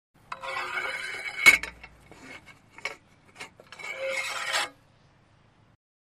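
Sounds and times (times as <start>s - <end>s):
worm tool scraping inside cannon barrel: 0.3s - 4.8s.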